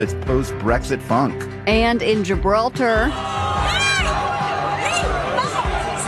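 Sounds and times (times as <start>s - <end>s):
speech: 0.0s - 3.7s
crowd cheering in Gibraltar as the border wall comes down: 3.0s - 6.0s
sharp rising shouts: 3.1s - 6.0s.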